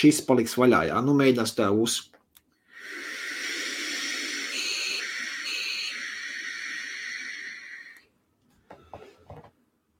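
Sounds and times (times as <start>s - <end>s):
speech: 0.0s - 2.1s
breathy puffs: 2.7s - 8.0s
air drawn through vape device airflow holes: 2.7s - 8.1s.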